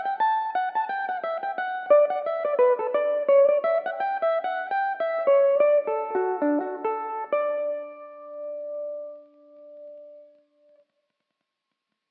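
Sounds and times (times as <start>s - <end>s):
Irish mandolin playing in D major: 0.0s - 9.2s.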